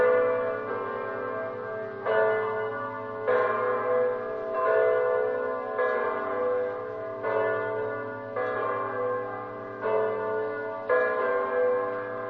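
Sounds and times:
church bells ringing in Montesanto: 0:00.0 - 0:12.2.

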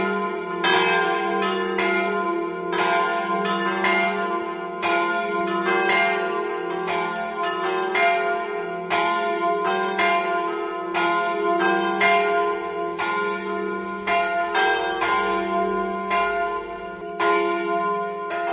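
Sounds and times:
bells ringing on a hill: 0:00.0 - 0:18.5.

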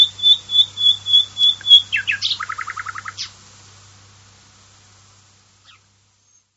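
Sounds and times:
common nightingale whistled song: 0:00.0 - 0:03.3.

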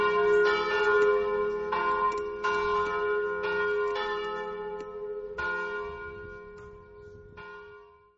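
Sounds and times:
bells ringing in Mereto: 0:00.0 - 0:08.1.

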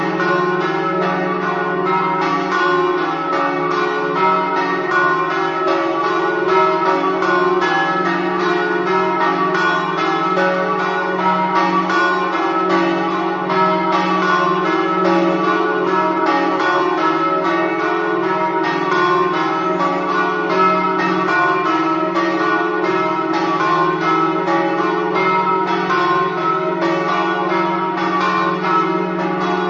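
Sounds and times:
church bells ringing in Moggio: 0:00.0 - 0:29.6.

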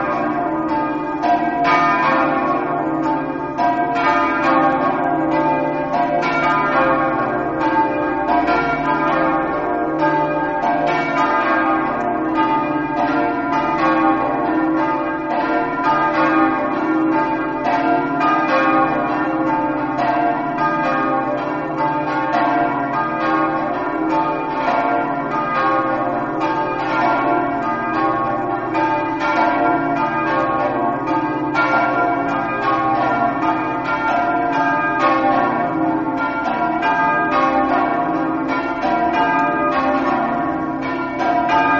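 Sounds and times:
bells: 0:00.0 - 0:41.7.

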